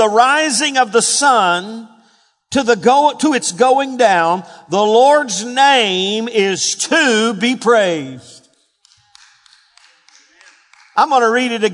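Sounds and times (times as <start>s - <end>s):
speech: 0.0s - 8.4s, 11.0s - 11.7s
hand claps: 8.5s - 11.4s.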